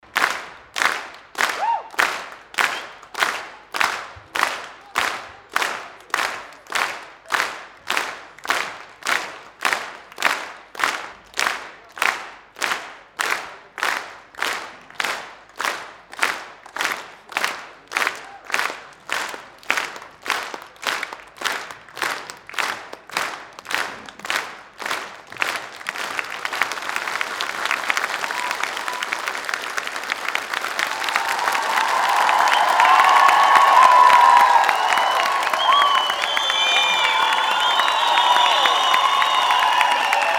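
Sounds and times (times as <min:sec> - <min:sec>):
applause: 0:00.0 - 0:40.3.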